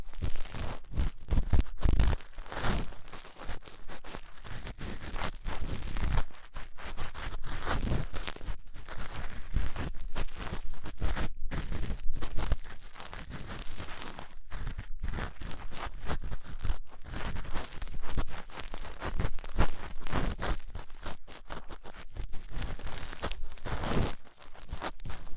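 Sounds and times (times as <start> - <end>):
ear cleaning with latex gloves, a dental pick and cotton swabs: 0.0 - 25.3.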